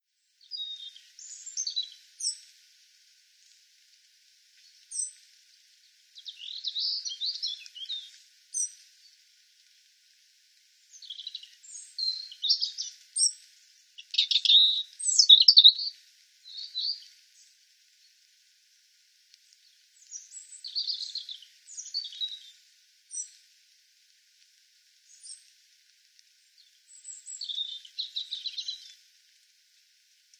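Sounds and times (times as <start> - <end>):
European robin Erithacus rubecula singing high tinkling phrases: 0.5 - 2.4, 6.2 - 8.8, 10.9 - 13.4, 14.0 - 17.1, 19.6 - 22.5, 26.6 - 29.0.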